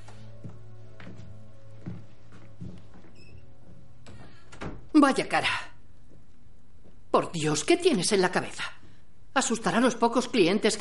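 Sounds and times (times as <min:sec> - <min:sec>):
door opening: 0:02.6 - 0:04.9
speech: 0:05.0 - 0:05.7, 0:07.2 - 0:08.8, 0:09.4 - 0:10.7.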